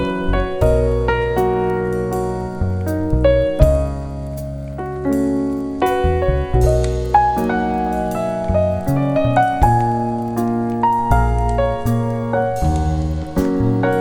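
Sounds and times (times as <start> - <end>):
jazz soundscape: 0.0 - 13.9.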